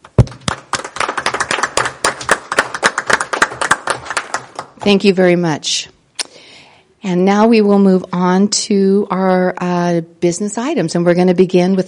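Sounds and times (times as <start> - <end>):
applause: 0.0 - 4.9
speech: 4.8 - 5.9, 7.0 - 11.8.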